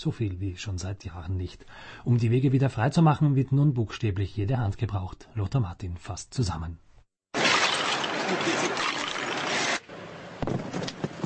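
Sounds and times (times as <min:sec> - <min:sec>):
speech: 0:00.0 - 0:06.9
cracking and tinkling ice fragments: 0:07.4 - 0:09.8
icicles knocked off gutters shattering: 0:07.4 - 0:09.8.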